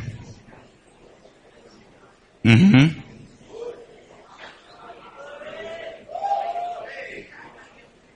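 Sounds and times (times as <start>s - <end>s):
audience talking to neighbours: 0.4s - 8.1s
people shouting: 5.2s - 7.0s.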